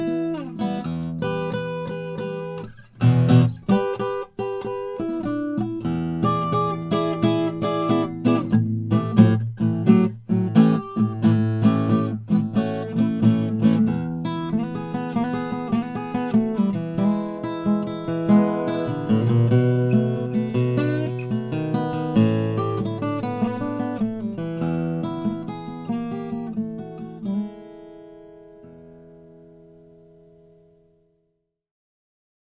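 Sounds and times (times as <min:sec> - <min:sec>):
Collings 002H Indian rosewood acoustic guitar: 0:00.0 - 0:31.1.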